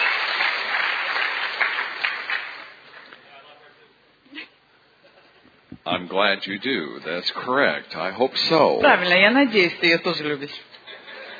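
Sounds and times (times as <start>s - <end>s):
audience applause: 0.0s - 3.1s
speech: 5.9s - 10.7s.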